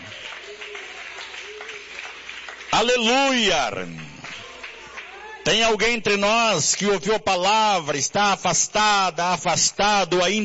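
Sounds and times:
audience clapping: 0.0 - 6.0
speech: 2.8 - 4.0, 5.5 - 10.4.

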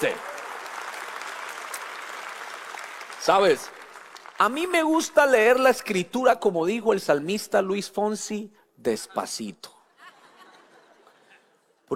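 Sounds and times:
audience applauding: 0.0 - 5.4
speech: 3.2 - 3.8, 4.4 - 9.8
laughter: 9.9 - 11.8.

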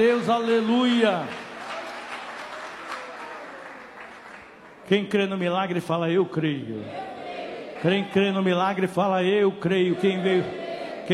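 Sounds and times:
speech: 0.0 - 1.4, 4.9 - 7.1, 7.8 - 11.1
church congregation clapping for Jesus: 0.0 - 5.6, 7.7 - 8.6.

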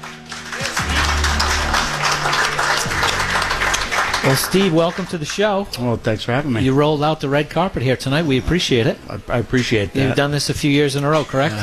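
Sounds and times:
audience applause in a restaurant at an evening coaches show: 0.0 - 5.6
speech: 4.2 - 11.6.

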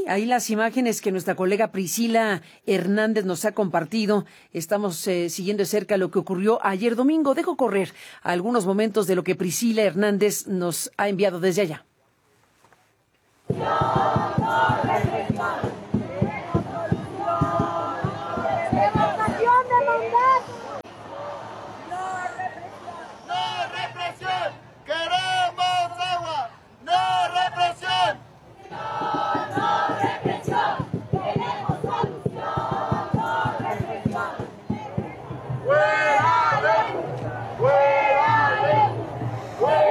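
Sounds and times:
speech: 0.1 - 11.9
crowd chanting and shouting at a peaceful street demonstration: 13.5 - 39.8.

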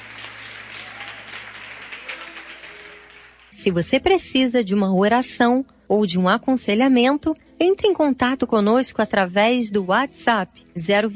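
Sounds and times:
audience applause: 0.0 - 3.6
speech: 3.6 - 11.1.

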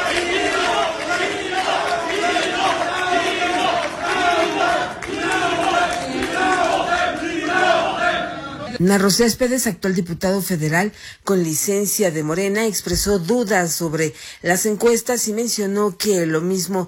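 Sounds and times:
protesters shouting fraud: 0.0 - 8.8
speech: 8.8 - 16.8.

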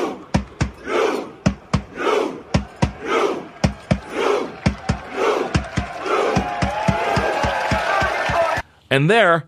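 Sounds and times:
large crowd chanting a rowing call in unison, Viking row: 0.0 - 8.6
sharp claps on the beat: 1.4 - 8.6.

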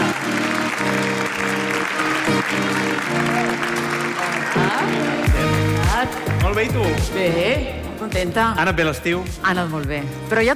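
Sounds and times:
audience applause: 0.0 - 6.7
speech: 6.0 - 10.5.

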